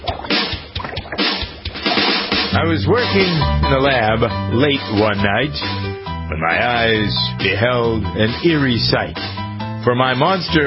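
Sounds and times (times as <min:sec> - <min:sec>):
bubbling boiling sound effect opening a Halloween novelty song: 0:00.0 - 0:02.5
speech: 0:02.6 - 0:10.6.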